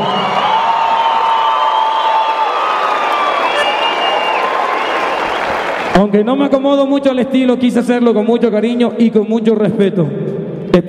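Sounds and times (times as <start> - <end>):
crowd applauding and cheering: 0.0 - 6.5
speech: 6.0 - 10.2.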